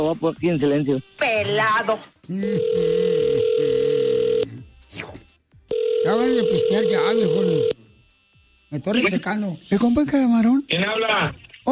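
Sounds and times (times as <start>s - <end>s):
speech: 0.0s - 3.9s, 6.0s - 7.8s, 8.7s - 11.7s
telephone dial tone while calling: 2.6s - 4.4s, 5.7s - 7.8s.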